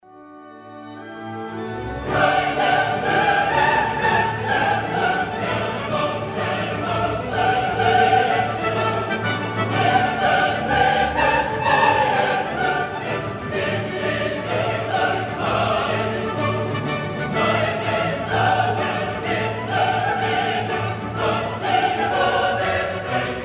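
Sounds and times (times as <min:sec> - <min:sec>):
choir singing: 0:01.0 - 0:23.4.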